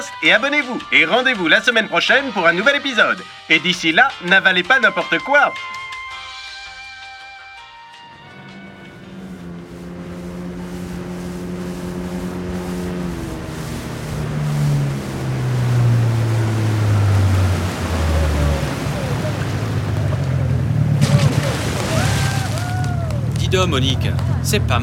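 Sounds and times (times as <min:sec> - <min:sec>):
speech: 0:00.0 - 0:05.8, 0:23.6 - 0:24.8
motorboat engine droning while towing a water skier: 0:00.0 - 0:24.8
wind: 0:00.0 - 0:24.8
water wash: 0:08.1 - 0:24.8.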